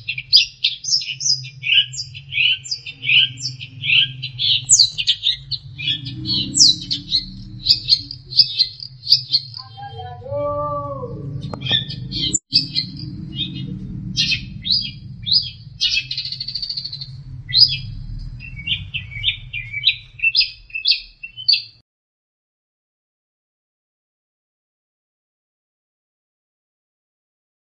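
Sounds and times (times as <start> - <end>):
low hum: 0.0 - 21.5
long-tailed shrike song: 0.0 - 21.8.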